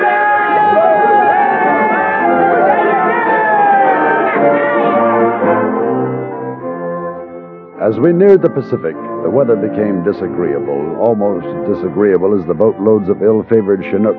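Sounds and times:
men cheering: 0.0 - 5.9
speech: 7.9 - 14.1.

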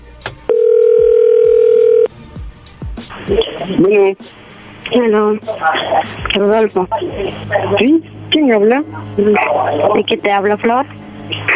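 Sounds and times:
steady electronic telephone tone as a call comes in: 0.5 - 2.1
speech: 3.3 - 10.9.

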